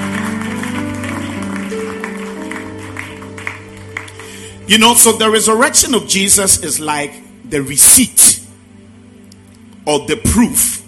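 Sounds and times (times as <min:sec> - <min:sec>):
audience clapping: 0:00.0 - 0:05.2
speech: 0:04.7 - 0:08.4, 0:09.9 - 0:10.8.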